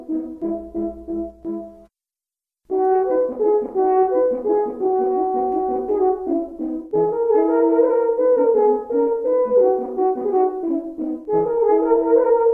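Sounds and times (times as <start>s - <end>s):
two horns playing allegretto: 2.7s - 12.5s.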